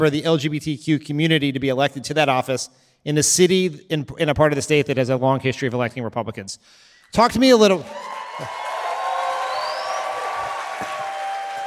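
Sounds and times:
speech: 0.0 - 8.7
audience applause: 7.9 - 11.6
crowd whooping and cheering: 7.9 - 11.6.

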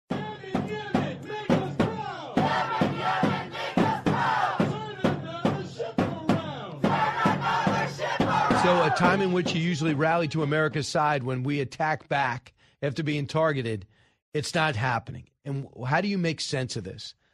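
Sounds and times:
crowd of Houthi rebels chanting in Yemen: 0.1 - 10.7
speech: 8.9 - 17.2.

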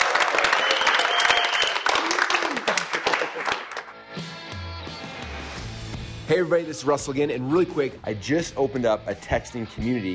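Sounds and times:
audience applause: 0.0 - 4.0
speech: 6.3 - 10.1.

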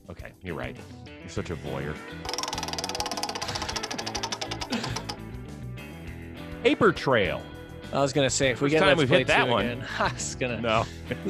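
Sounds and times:
speech: 0.4 - 2.6, 6.6 - 11.2
prize wheel spinning and clicking: 2.2 - 5.3.

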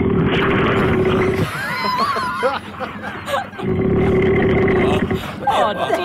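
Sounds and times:
loud snoring: 0.0 - 1.4, 3.6 - 5.3
laughter: 1.4 - 3.8, 4.7 - 6.0.

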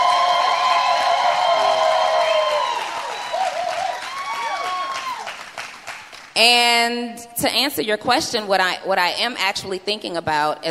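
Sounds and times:
whoops and cheering voices: 0.0 - 5.5
crowd applauding: 0.0 - 6.4
speech: 6.4 - 10.7.

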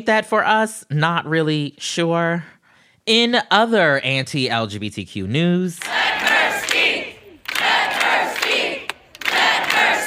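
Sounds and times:
speech: 0.0 - 6.0
Montanans chanting in unison at the state House of Representatives: 5.8 - 10.0.

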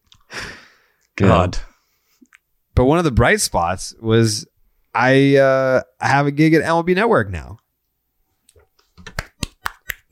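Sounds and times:
speech: 1.2 - 1.7, 2.8 - 7.6
hands clapping: 9.0 - 10.1.

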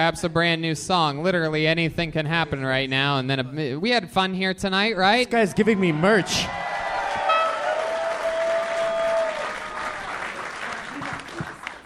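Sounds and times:
speech: 0.0 - 6.6
crowd clapping: 5.8 - 11.8
long high whistle or cheer: 6.2 - 9.6.

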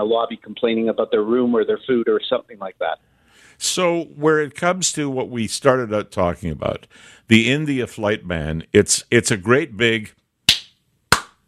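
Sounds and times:
speech: 0.0 - 10.2
person clapping hands: 10.5 - 11.4.

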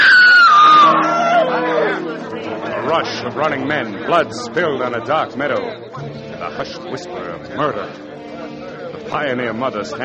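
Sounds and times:
woman screaming: 0.0 - 1.9
speech: 2.9 - 8.1, 9.1 - 10.0.

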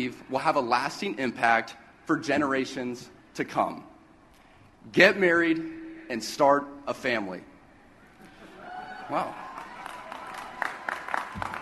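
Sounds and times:
speech: 0.0 - 3.9, 4.8 - 7.5, 9.1 - 9.4
one person clapping: 9.6 - 11.6.

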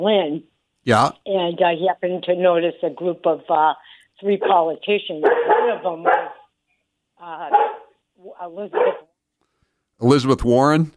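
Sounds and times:
speech: 0.0 - 6.3, 7.2 - 9.1, 10.0 - 10.9
dog barking during a phone call: 4.4 - 6.5, 7.4 - 8.0, 8.7 - 9.1.

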